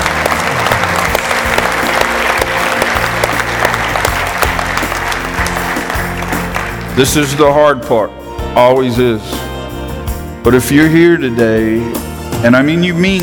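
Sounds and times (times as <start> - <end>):
audience applause: 0.0 - 7.4
speech: 7.0 - 9.4, 10.4 - 13.2.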